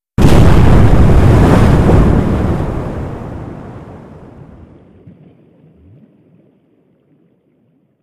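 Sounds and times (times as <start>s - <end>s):
underwater explosions: 0.2s - 7.9s.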